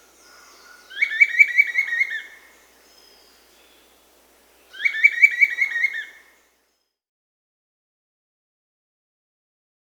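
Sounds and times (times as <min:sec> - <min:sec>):
Bright-rumped Attila Attila spadiceus calling in Peru: 0:00.0 - 0:06.4.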